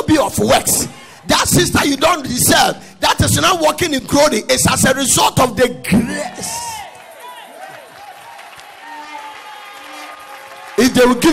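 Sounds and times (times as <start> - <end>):
speech: 0.1 - 6.7, 11.0 - 11.3
audience shouting: 6.0 - 10.9
audience clapping: 6.8 - 11.3.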